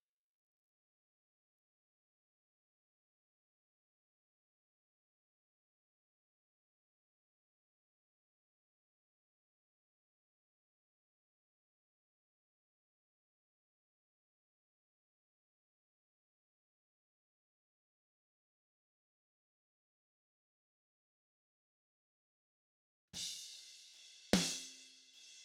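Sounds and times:
snare drum: 23.2s - 25.4s.

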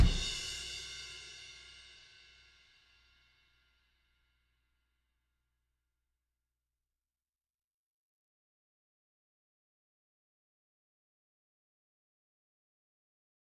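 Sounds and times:
drums: 0.0s - 2.4s.

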